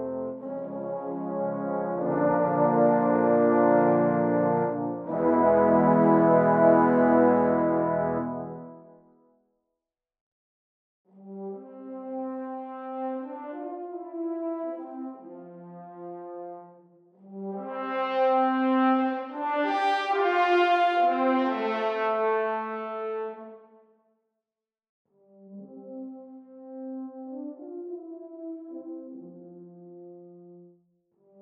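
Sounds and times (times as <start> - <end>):
brass long notes: 0.0 - 9.1, 11.2 - 23.7.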